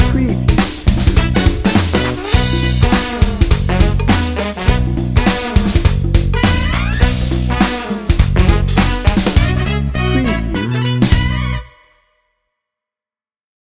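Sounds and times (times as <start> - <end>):
funk music with brass: 0.0 - 12.0.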